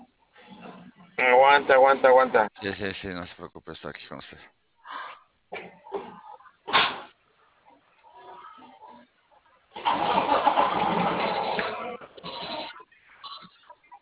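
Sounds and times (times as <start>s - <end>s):
speech: 1.2s - 4.6s
car engine starting: 9.8s - 12.6s.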